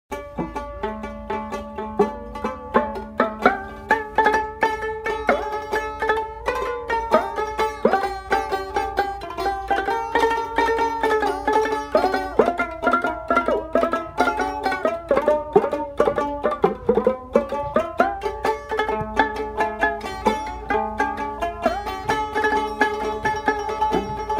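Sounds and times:
dotara: 0:00.1 - 0:24.3
khamak: 0:00.1 - 0:24.3.

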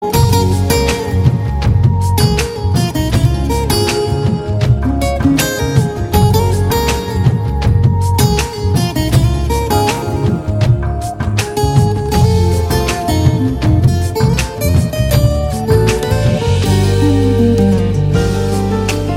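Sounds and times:
guitar: 0:00.0 - 0:19.1.

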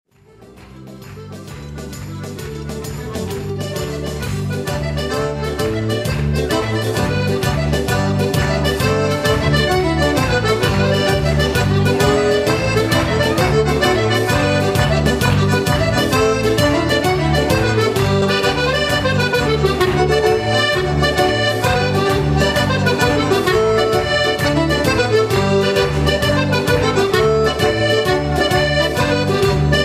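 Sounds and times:
Abruzzese organetto accordion: 0:00.1 - 0:29.8.

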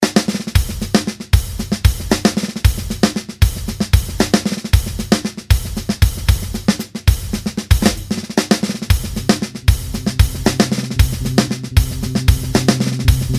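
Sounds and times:
drumline playing: 0:00.0 - 0:13.3.

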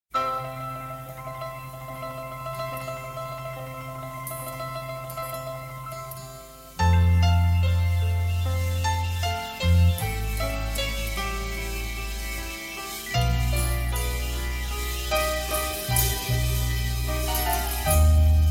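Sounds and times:
old song: 0:00.1 - 0:18.4.

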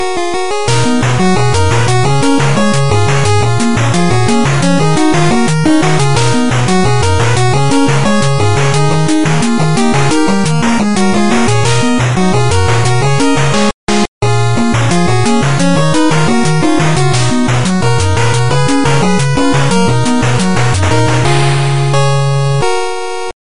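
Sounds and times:
8-bit music: 0:00.0 - 0:23.3.

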